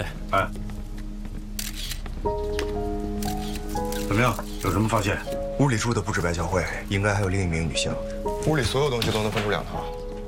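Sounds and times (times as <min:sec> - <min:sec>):
speech: 0:00.0 - 0:00.6, 0:02.2 - 0:10.0
camera shutter clicks photographing evidence: 0:01.6 - 0:02.1, 0:03.2 - 0:05.4.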